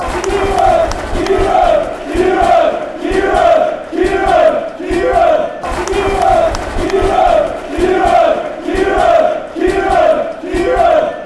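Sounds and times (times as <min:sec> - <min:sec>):
fans chanting: 0:00.0 - 0:11.2.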